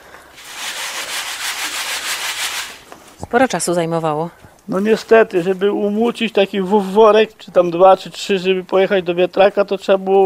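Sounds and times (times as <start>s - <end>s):
sieve shaken to demonstrate winnowing: 0.4s - 2.9s
speech: 3.3s - 10.2s.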